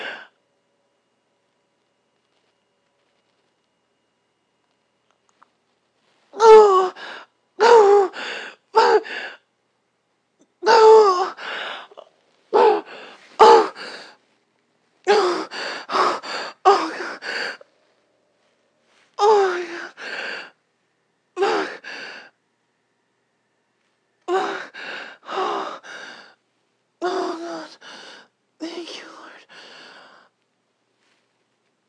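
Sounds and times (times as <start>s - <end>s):
person moaning: 6.4s - 9.3s, 10.6s - 14.1s, 15.1s - 17.6s, 19.2s - 20.2s, 21.4s - 21.9s, 24.3s - 25.9s, 27.0s - 27.9s.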